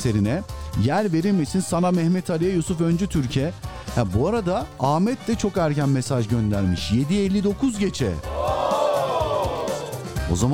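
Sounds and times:
speech: 0:00.0 - 0:08.3, 0:10.3 - 0:10.5
crowd cheering: 0:08.3 - 0:10.2.

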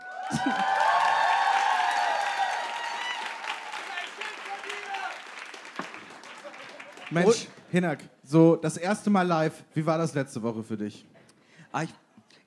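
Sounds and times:
laughter: 0:00.0 - 0:01.0, 0:06.1 - 0:07.7
cheering voices: 0:00.0 - 0:07.6
crowd clapping: 0:00.0 - 0:07.7
speech: 0:07.1 - 0:11.1, 0:11.7 - 0:12.4.

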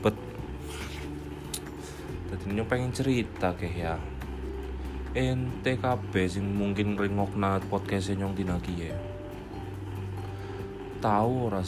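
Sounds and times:
speech: 0:00.0 - 0:01.0, 0:02.3 - 0:04.2, 0:05.2 - 0:09.1, 0:11.0 - 0:11.6
electric fan whirring: 0:00.0 - 0:11.6.

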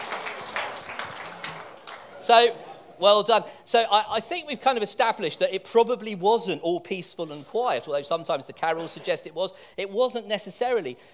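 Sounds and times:
small group applauding: 0:00.0 - 0:02.2
speech: 0:02.3 - 0:11.1.

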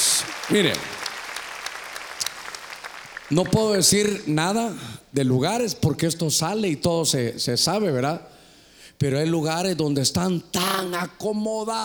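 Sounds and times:
audience applause: 0:00.0 - 0:04.2
speech: 0:00.2 - 0:01.0, 0:03.3 - 0:08.4, 0:09.0 - 0:11.8.

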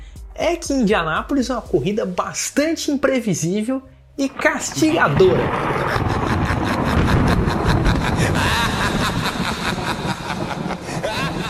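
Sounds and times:
speech: 0:00.4 - 0:06.3
thunder sound effect: 0:04.4 - 0:11.4
person giggling: 0:05.6 - 0:11.4.

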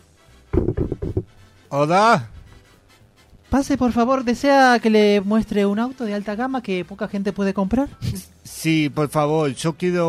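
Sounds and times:
knocking on a door: 0:00.6 - 0:01.3
speech: 0:01.7 - 0:02.3, 0:03.5 - 0:10.0.

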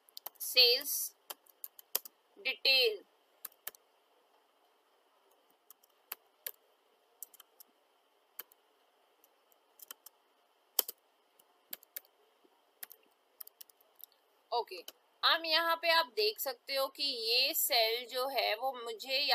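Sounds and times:
faint steady hum: 0:00.0 - 0:19.3
computer keyboard typing into a spreadsheet cell: 0:00.1 - 0:02.2, 0:03.4 - 0:03.8, 0:05.3 - 0:06.6, 0:07.2 - 0:07.7, 0:08.4 - 0:08.6, 0:09.2 - 0:10.2, 0:10.8 - 0:12.2, 0:12.8 - 0:14.2
speech: 0:00.4 - 0:01.2, 0:02.4 - 0:03.1, 0:14.6 - 0:19.3.

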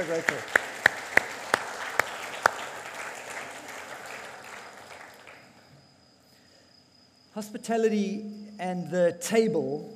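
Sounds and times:
speech: 0:00.0 - 0:00.6, 0:07.4 - 0:09.9
audience applause: 0:00.0 - 0:05.7.

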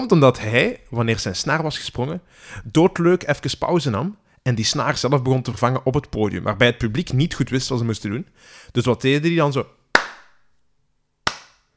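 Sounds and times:
speech: 0:00.0 - 0:09.8
slow rhythmic hand clapping: 0:10.0 - 0:10.4, 0:11.2 - 0:11.7.

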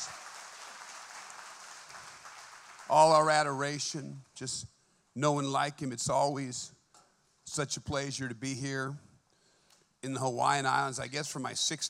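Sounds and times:
audience clapping: 0:00.0 - 0:03.7
speech: 0:02.9 - 0:06.8, 0:07.5 - 0:09.1, 0:10.0 - 0:11.8.

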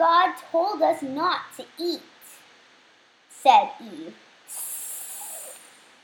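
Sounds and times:
speech: 0:00.0 - 0:02.2, 0:03.4 - 0:04.6
person imitating a snake's hiss: 0:04.5 - 0:05.8.

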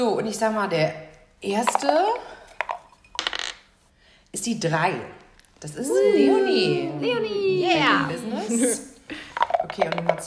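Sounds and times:
speech: 0:00.0 - 0:02.4, 0:04.4 - 0:10.2
dice rattling on a hard surface: 0:01.6 - 0:02.0, 0:02.6 - 0:03.7, 0:09.4 - 0:10.2.

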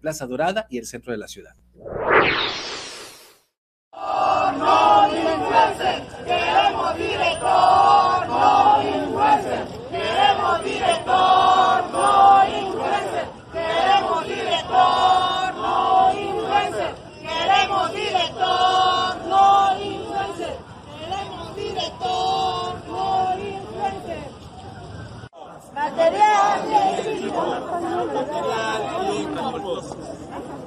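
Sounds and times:
speech: 0:00.0 - 0:02.7
sweeping whoosh: 0:01.8 - 0:03.6
protesters chanting slogans in the street: 0:04.0 - 0:29.6.

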